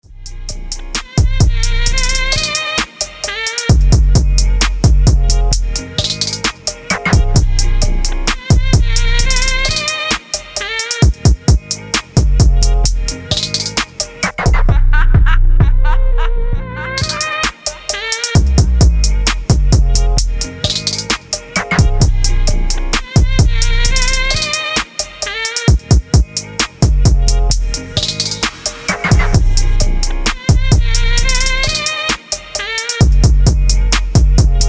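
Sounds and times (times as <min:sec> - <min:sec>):
phonk music: 0:00.0 - 0:34.6.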